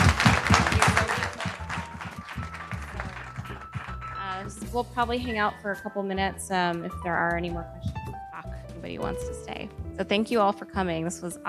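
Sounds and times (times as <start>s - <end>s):
audience applause for a panel: 0.0s - 4.2s
speech: 4.7s - 7.9s, 8.8s - 11.4s.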